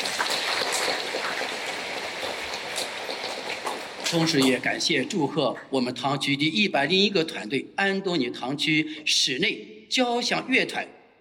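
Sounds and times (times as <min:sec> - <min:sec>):
audience applause: 0:00.0 - 0:05.3
speech: 0:04.1 - 0:11.2.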